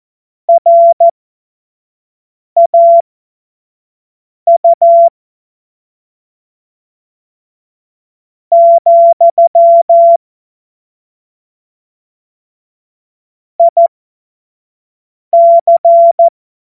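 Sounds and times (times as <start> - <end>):
morse code beeps: 0.5 - 1.1, 2.6 - 3.0, 4.5 - 5.1, 8.5 - 10.2, 13.6 - 13.9, 15.4 - 16.3.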